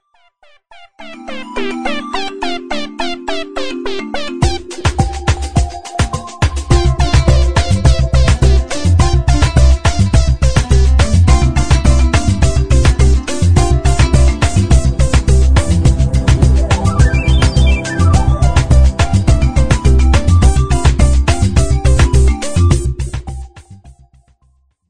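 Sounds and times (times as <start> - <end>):
Samsung Note8 ringtone: 0.7 - 15.6, 16.5 - 23.5.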